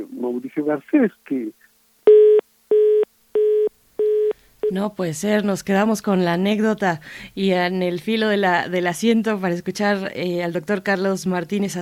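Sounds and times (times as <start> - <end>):
speech: 0.0 - 1.6, 4.7 - 11.8
telephone dialing tones while reconnecting a call: 2.1 - 4.8.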